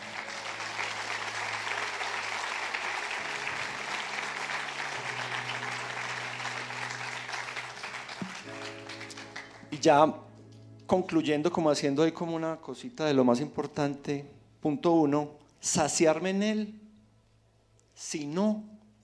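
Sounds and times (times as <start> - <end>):
crowd applauding: 0.0 - 9.9
speech: 9.8 - 10.2, 10.9 - 16.8, 18.0 - 19.0.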